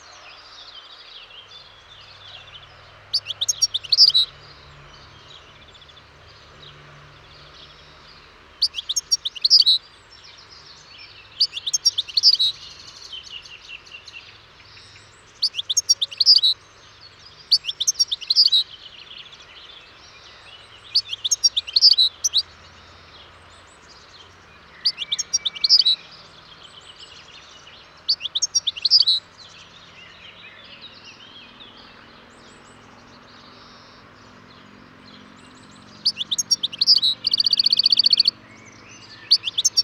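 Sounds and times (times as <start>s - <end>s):
European goldfinch song: 3.1s - 4.4s, 8.6s - 9.8s, 11.4s - 13.0s, 15.4s - 16.6s, 17.5s - 18.7s, 20.9s - 22.6s, 24.8s - 26.1s, 28.0s - 29.6s, 35.6s - 39.8s.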